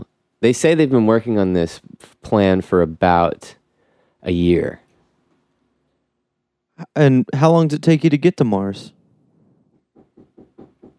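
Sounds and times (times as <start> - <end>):
speech: 0.4 - 3.6, 4.2 - 4.8, 6.9 - 9.0
knuckles knocking at the door: 9.7 - 10.9.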